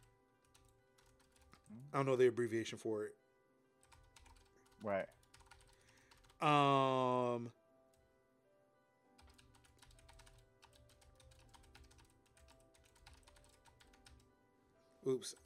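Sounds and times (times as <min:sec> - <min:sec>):
typing on a computer keyboard in Notepad: 0:00.0 - 0:01.7, 0:03.8 - 0:06.6, 0:09.2 - 0:14.2, 0:15.3 - 0:15.4
speech: 0:01.7 - 0:03.2, 0:04.8 - 0:05.2, 0:06.4 - 0:07.6, 0:15.1 - 0:15.4.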